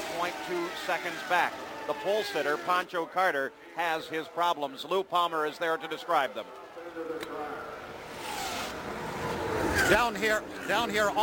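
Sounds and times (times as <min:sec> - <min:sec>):
speech: 0:00.2 - 0:07.7, 0:09.9 - 0:11.2
race car engine being fired up: 0:07.8 - 0:10.4.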